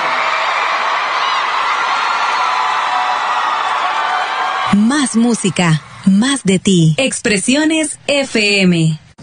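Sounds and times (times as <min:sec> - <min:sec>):
cheers and whoops: 0:00.0 - 0:04.8
large crowd applause: 0:00.0 - 0:04.8
speech: 0:04.8 - 0:09.0.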